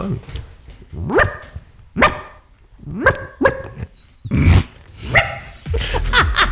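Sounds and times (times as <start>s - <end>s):
person imitating a small yapping dog barking: 2.8s - 5.3s
laughter: 5.6s - 6.5s.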